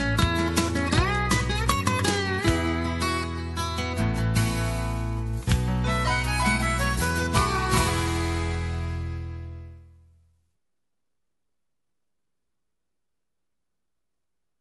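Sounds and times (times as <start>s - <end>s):
acoustic country bluegrass ballad: 0.0s - 10.0s.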